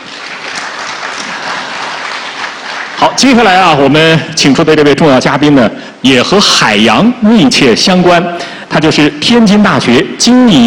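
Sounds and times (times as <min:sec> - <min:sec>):
audience applause: 0:00.0 - 0:03.6
speech: 0:03.0 - 0:10.6.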